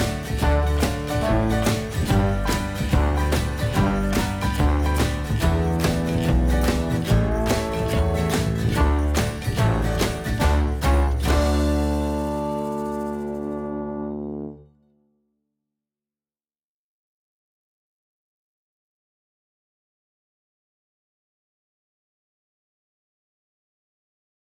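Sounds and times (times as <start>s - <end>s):
background music: 0.0s - 14.6s.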